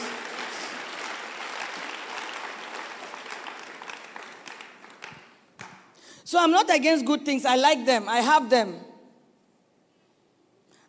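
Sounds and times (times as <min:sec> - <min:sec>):
audience clapping hands: 0:00.0 - 0:06.0
speech: 0:06.3 - 0:08.9.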